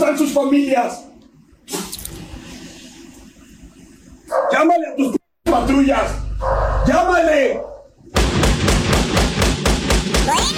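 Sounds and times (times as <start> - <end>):
speech: 0.2 - 1.1, 4.5 - 7.7
kicking and banging on a door: 8.2 - 10.5.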